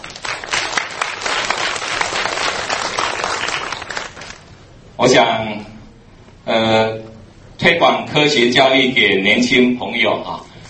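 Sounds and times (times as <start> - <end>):
audience applause: 0.0 - 4.5
speech: 5.0 - 5.6, 7.7 - 10.4.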